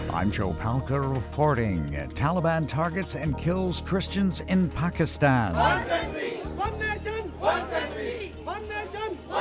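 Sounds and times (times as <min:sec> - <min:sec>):
speech: 0:00.2 - 0:07.9
crowd chanting at a demonstration: 0:05.5 - 0:09.3.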